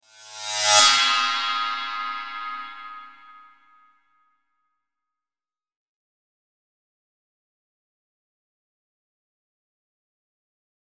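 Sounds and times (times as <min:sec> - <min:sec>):
ride cymbal: 0:00.1 - 0:03.4.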